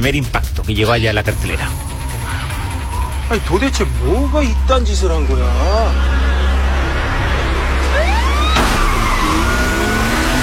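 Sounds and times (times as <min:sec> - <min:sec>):
speech: 0:00.0 - 0:01.9, 0:03.3 - 0:06.2
car engines roaring: 0:01.3 - 0:10.4
police sirens wailing: 0:01.3 - 0:10.4.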